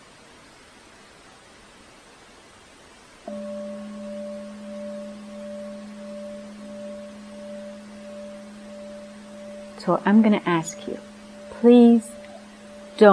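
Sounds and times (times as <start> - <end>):
bell being rung: 3.3 - 13.1
speech: 9.8 - 12.1, 13.0 - 13.1.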